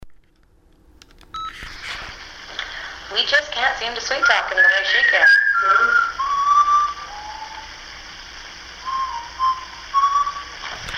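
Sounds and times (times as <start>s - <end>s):
whistle: 4.0s - 7.8s, 8.8s - 10.9s.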